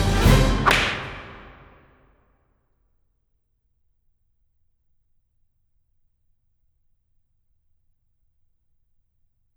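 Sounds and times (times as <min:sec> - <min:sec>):
orchestral polka: 0:00.0 - 0:01.8.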